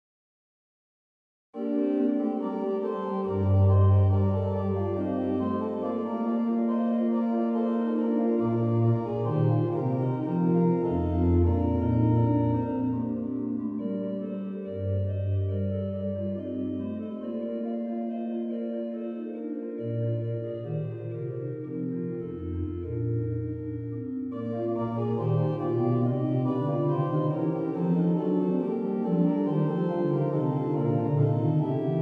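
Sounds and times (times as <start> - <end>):
organ music in Souvigny: 1.6 - 32.0.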